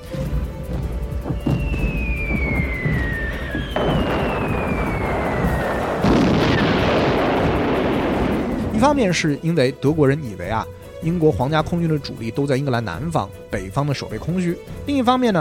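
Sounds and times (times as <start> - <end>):
falling bombs whistling during a German bomber raid on northern England: 0.8 - 9.0
bomb explosions: 1.1 - 9.4
speech: 8.8 - 15.3.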